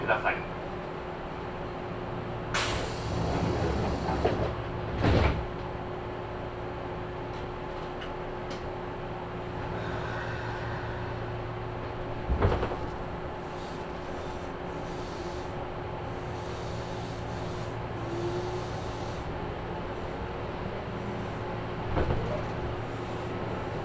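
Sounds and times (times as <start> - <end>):
Kintetsu express train rumble and hum leaving Ise-Wakamatsu: 0.0 - 23.8
sharp clunks and knocks: 3.4 - 5.5, 12.2 - 13.1, 21.8 - 22.6.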